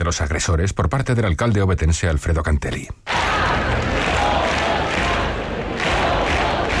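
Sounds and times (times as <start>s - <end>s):
speech: 0.1s - 3.4s
protest crowd chanting slogan: 3.1s - 6.7s.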